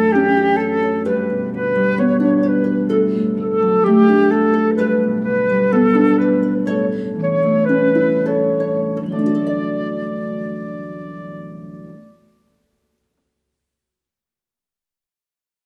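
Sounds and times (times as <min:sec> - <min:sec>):
flute playing: 0:00.0 - 0:12.3.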